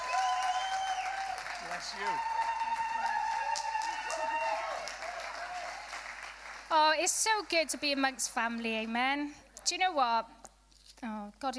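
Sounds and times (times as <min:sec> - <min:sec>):
audience applause: 0:00.0 - 0:08.2
speech: 0:01.8 - 0:02.4, 0:06.7 - 0:10.4, 0:11.0 - 0:11.5.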